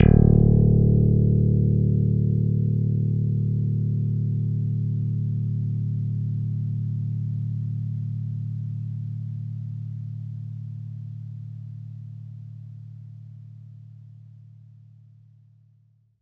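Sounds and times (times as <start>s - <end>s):
bass note D, stick: 0.0s - 10.6s.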